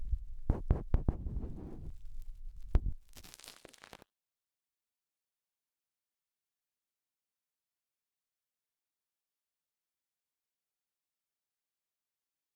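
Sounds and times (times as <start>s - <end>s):
cotton swab rubbing deep inside the right ear: 0.0s - 3.9s.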